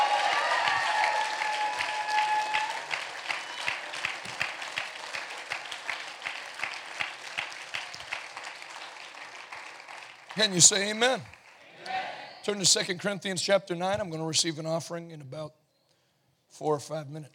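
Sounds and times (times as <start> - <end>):
voices and cheers: 0.0 - 9.0, 11.6 - 12.6
audience applause: 0.0 - 11.6
speech: 10.4 - 11.4, 12.4 - 15.6, 16.5 - 17.3.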